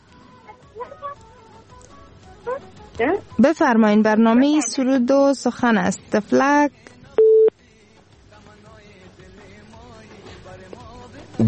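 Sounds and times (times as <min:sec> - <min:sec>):
faint murmuring background: 0:00.3 - 0:06.8
speech: 0:02.5 - 0:06.9
busy tone after a dropped phone call: 0:07.2 - 0:07.5.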